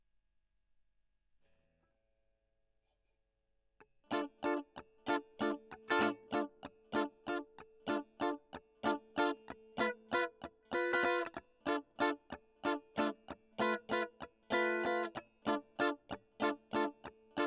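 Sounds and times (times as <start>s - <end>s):
electric guitar recorded with a Gefell microphone: 4.1s - 17.4s.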